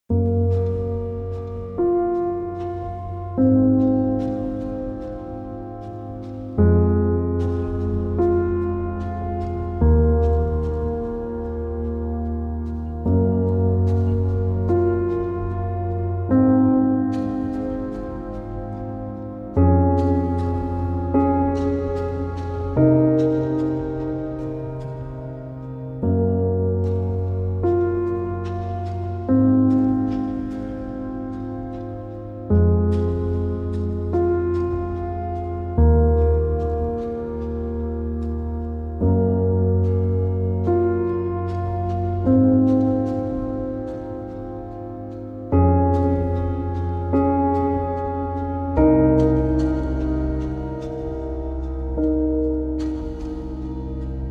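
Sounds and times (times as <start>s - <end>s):
tuned piano: 0.0s - 54.2s.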